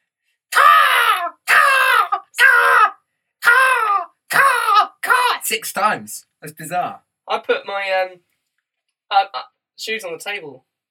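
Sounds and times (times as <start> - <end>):
voice imitating raven caws: 0.6 - 5.4
speech: 5.5 - 8.3, 9.1 - 10.7.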